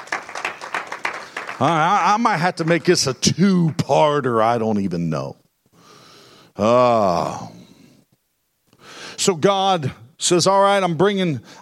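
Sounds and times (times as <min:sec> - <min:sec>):
audience clapping hands in praise: 0:00.0 - 0:04.0
speech: 0:01.6 - 0:05.4, 0:06.6 - 0:07.6, 0:09.2 - 0:11.6.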